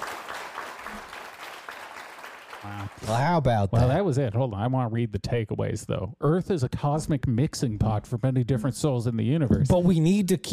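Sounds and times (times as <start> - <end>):
steady applause from a group: 0.0 - 3.2
speech: 2.6 - 10.5.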